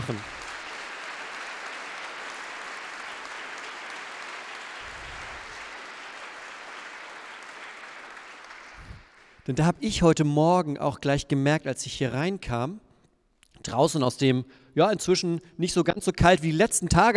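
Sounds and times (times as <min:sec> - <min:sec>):
audience applause: 0:00.0 - 0:09.4
speech: 0:00.1 - 0:00.4, 0:09.5 - 0:12.8, 0:13.6 - 0:17.1.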